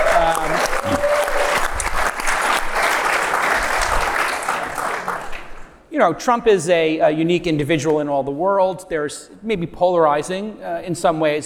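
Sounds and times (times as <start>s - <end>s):
audience applause: 0.0s - 5.8s
speech: 6.0s - 11.4s.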